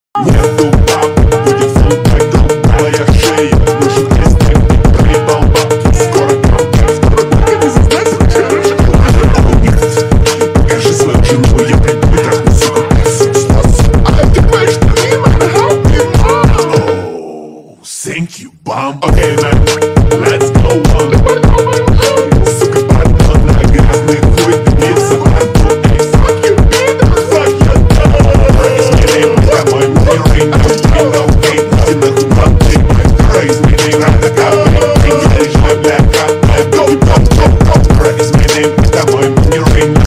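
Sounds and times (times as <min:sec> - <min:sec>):
phonk remix ringtone: 0:00.2 - 0:17.2, 0:19.0 - 0:40.0.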